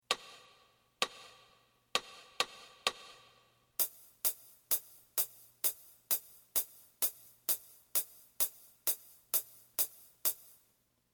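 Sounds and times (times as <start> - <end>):
drum: 2.0 - 10.6.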